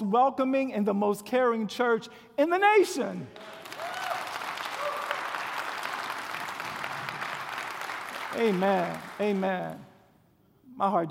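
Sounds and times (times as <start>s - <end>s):
speech: 0.1s - 3.6s, 8.4s - 9.9s, 10.8s - 11.0s
audience clapping: 3.4s - 10.0s.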